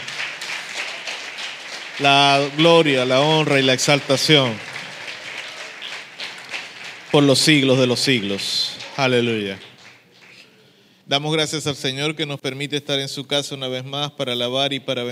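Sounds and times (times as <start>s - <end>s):
audience applause: 0.0s - 10.6s
speech: 2.0s - 4.7s, 7.1s - 9.7s, 11.1s - 15.1s.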